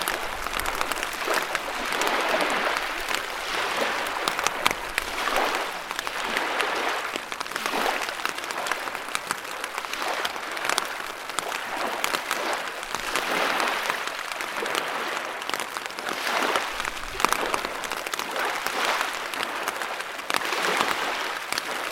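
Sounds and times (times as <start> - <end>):
surging river rushing: 0.0 - 21.9.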